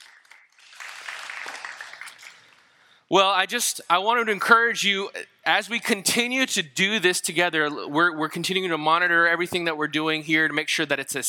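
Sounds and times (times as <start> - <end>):
audience applause: 0.0 - 2.6
speech: 3.1 - 11.2.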